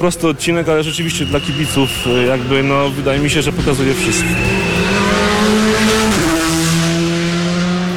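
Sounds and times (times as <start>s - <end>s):
speech: 0.0s - 4.8s
rally car engine roaring while accelerating hard out of a bend: 0.0s - 7.9s.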